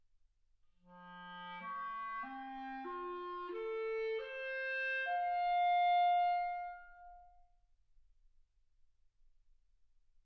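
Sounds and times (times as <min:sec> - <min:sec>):
clarinet: 0:00.9 - 0:07.5.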